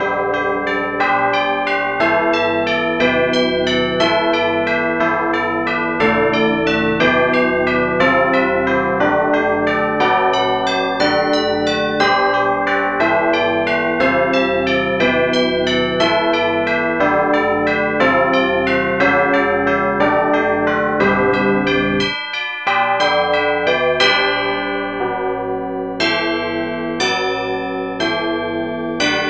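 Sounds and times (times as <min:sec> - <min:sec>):
tubular bells: 0:00.0 - 0:29.2.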